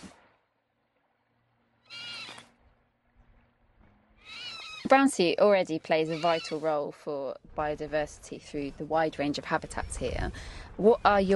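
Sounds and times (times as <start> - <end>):
strange squealing call: 1.9 - 2.4, 4.2 - 5.0, 6.0 - 6.7
speech: 4.9 - 11.3.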